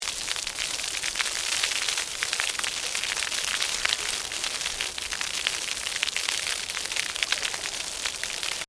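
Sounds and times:
medium water pour on concrete: 0.0s - 8.6s.

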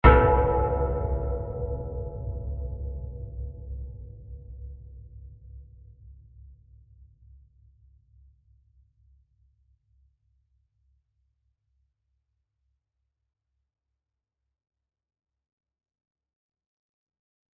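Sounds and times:
metal bell impact: 0.0s - 3.4s.

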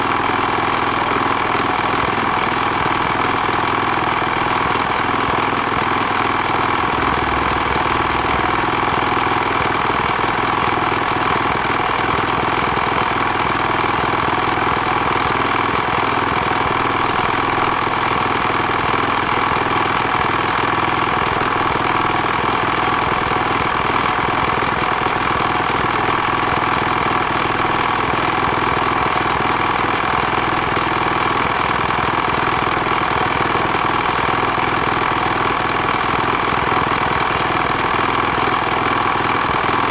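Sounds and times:
1973 Villiers 412 industrial engine operating: 0.0s - 39.8s.

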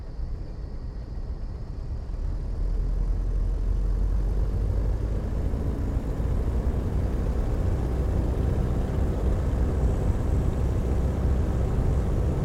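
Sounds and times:
1916 Sopwith Pup replica airplane flying heard from interior: 0.1s - 12.4s.

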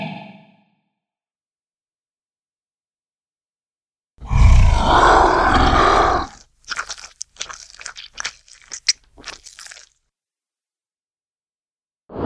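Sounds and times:
dragon monster sounds: 4.2s - 9.8s.

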